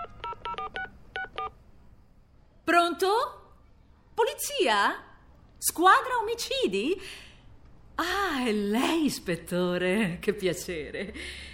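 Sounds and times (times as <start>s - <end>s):
touch-tone dialing on a telephone: 0.0s - 1.5s
faint hum: 0.0s - 11.5s
speech: 2.9s - 3.4s, 4.2s - 7.3s, 8.0s - 11.5s.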